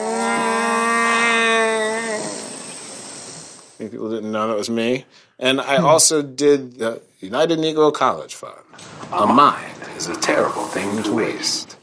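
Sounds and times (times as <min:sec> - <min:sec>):
human voice imitating a dying deer: 0:00.0 - 0:02.4
speech: 0:03.9 - 0:11.8.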